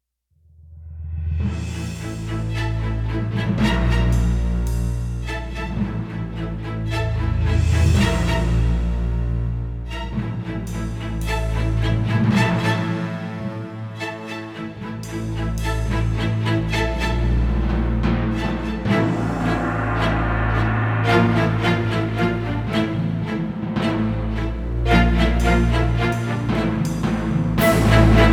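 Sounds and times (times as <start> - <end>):
dangerous tense music: 0.7 - 28.3.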